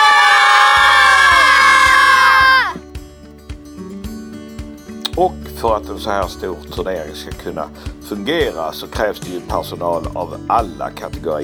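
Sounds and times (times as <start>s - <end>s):
team cheering: 0.0s - 2.8s
speech: 5.2s - 11.4s.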